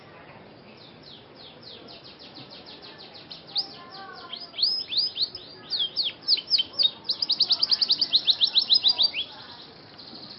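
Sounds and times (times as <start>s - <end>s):
Scotch Fancy canary singing with rapid rattling trills and swept whistles: 0.8s - 10.3s.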